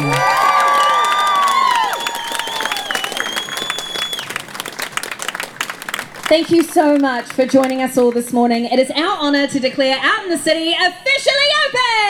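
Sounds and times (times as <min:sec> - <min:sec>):
cheers and whoops: 0:00.0 - 0:04.5
crowd applause: 0:00.0 - 0:09.5
speech: 0:06.3 - 0:12.0.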